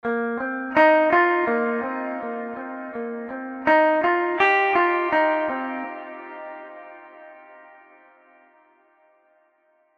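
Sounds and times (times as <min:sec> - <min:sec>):
big rock guitars: 0:00.1 - 0:07.6.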